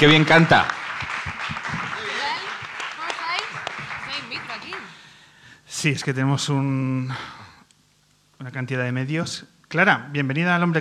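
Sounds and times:
speech: 0:00.0 - 0:00.8, 0:05.8 - 0:07.4, 0:08.4 - 0:10.8
audience applause: 0:00.0 - 0:05.2.

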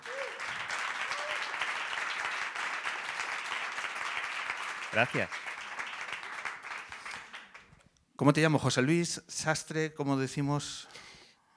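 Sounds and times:
whoops: 0:00.0 - 0:01.8
audience applauding: 0:00.0 - 0:07.8
speech: 0:04.9 - 0:05.4, 0:08.2 - 0:11.0.

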